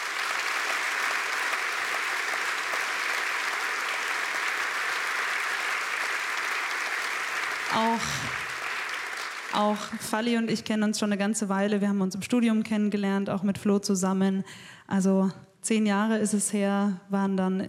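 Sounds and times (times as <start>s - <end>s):
audience applause: 0.0s - 10.0s
speech: 7.8s - 8.4s, 9.5s - 17.6s.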